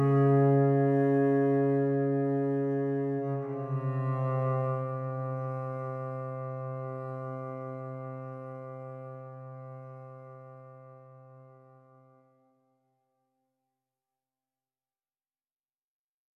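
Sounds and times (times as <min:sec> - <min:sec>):
cello: 0:00.0 - 0:12.4.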